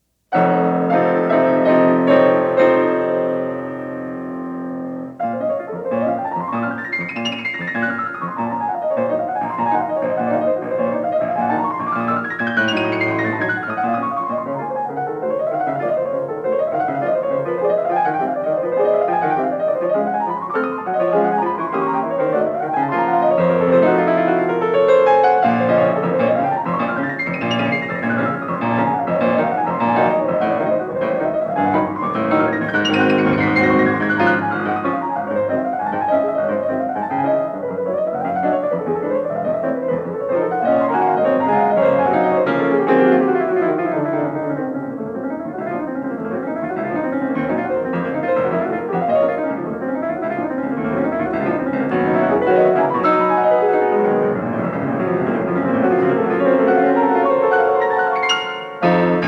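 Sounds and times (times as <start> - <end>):
prelude music: 0.3 - 59.2.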